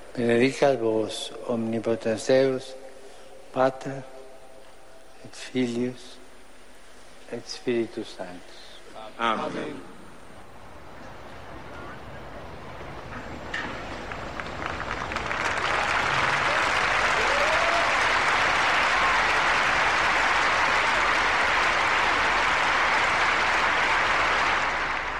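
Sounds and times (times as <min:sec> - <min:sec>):
speech: 0:00.2 - 0:02.8, 0:03.6 - 0:04.1, 0:05.2 - 0:06.2, 0:07.3 - 0:08.6, 0:09.2 - 0:09.9
pilgrims applauding in St. Peter's Square: 0:11.8 - 0:25.1.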